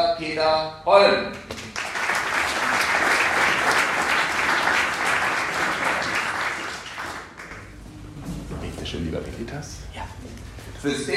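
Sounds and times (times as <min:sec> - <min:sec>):
speech: 0:00.0 - 0:01.9, 0:09.1 - 0:11.1
audience applause welcoming a speaker: 0:01.5 - 0:07.8.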